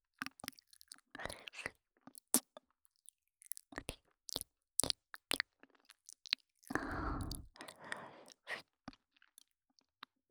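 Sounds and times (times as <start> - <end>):
shallow ASMR ear licking in the right ear: 0.2 - 1.6, 3.5 - 8.5.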